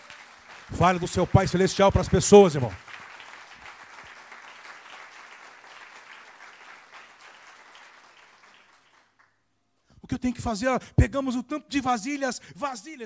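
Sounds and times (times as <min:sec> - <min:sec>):
audience applause: 0:00.0 - 0:09.3
speech: 0:00.7 - 0:02.9, 0:10.2 - 0:13.0.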